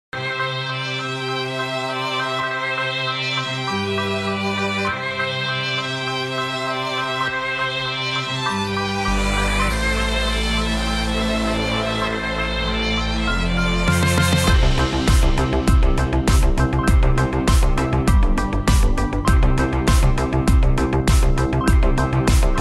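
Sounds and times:
quartet music remix: 0.2s - 22.5s.

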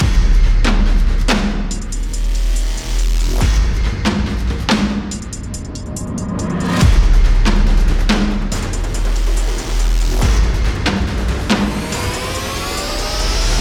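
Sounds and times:
battle music loop: 0.0s - 13.6s.

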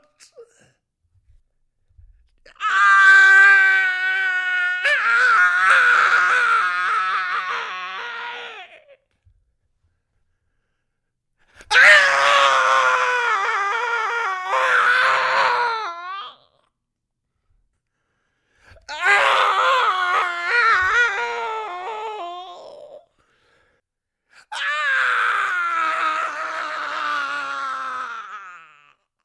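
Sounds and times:
people screaming: 2.6s - 8.9s, 11.7s - 16.4s, 18.9s - 22.9s, 24.5s - 28.8s.

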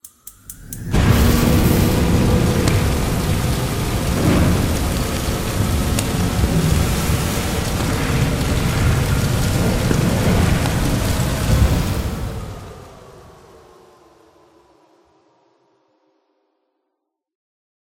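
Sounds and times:
furnace igniting with sparks: 0.7s - 13.2s.

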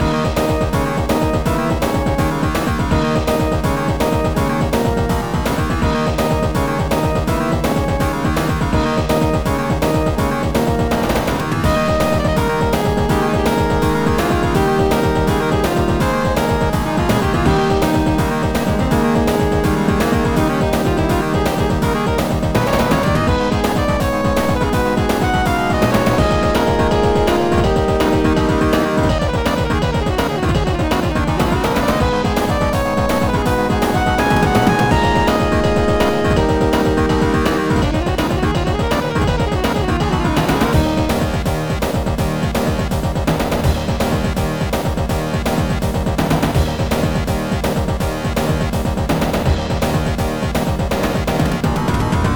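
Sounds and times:
castle boss game music loop: 0.0s - 52.3s.

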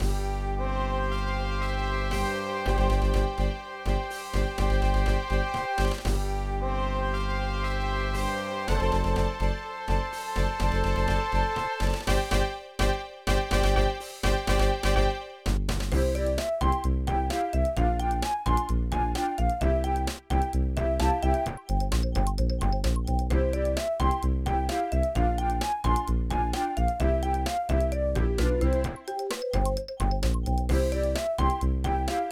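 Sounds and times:
opening background music: 0.0s - 32.3s.

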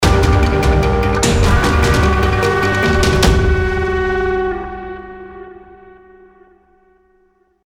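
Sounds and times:
video game boss fight outro jingle: 1.1s - 4.9s.

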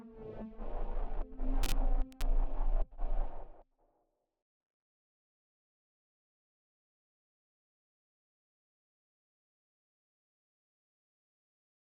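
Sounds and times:
synths: 0.2s - 3.6s.

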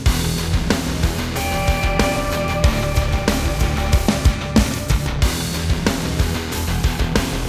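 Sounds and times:
start screen music loop: 0.2s - 7.4s.

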